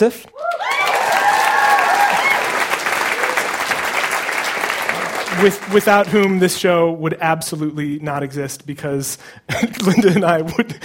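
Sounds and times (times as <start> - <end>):
speech: 0.0 - 0.5, 5.3 - 10.8
whoops and cheers: 0.4 - 3.8
crowd applauding: 0.4 - 6.4
laughter: 9.5 - 10.8.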